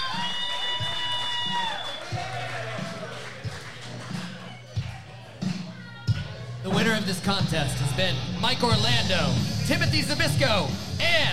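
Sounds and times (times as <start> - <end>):
wrestling crowd cheering: 0.0 - 7.1
speech: 7.0 - 11.3.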